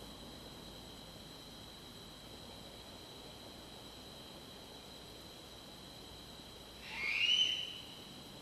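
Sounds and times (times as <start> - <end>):
Bubo owl in eucalyptus at Chajari: 6.8 - 8.0.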